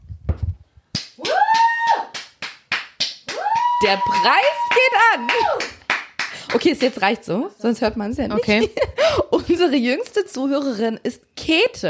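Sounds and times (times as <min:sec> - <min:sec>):
person clapping: 0:00.9 - 0:07.0
person whooping: 0:01.2 - 0:02.2, 0:03.3 - 0:05.8
speech: 0:03.8 - 0:05.8, 0:06.5 - 0:11.8.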